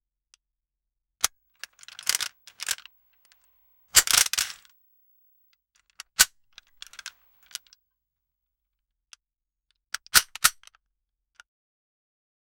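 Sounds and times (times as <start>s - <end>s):
weapon reloading: 1.6s - 4.8s, 6.6s - 7.7s.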